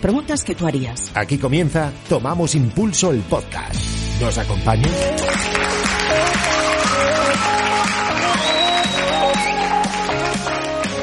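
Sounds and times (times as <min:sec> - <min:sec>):
speech: 0:00.0 - 0:06.5
steady crowd applause: 0:04.9 - 0:11.0.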